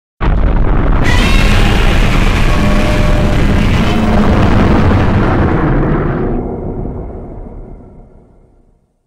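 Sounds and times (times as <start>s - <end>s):
roar: 1.1s - 6.5s.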